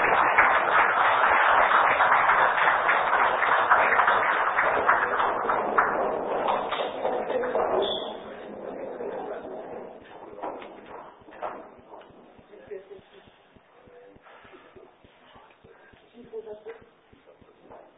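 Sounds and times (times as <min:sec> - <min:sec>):
audience applause: 0:00.0 - 0:11.8.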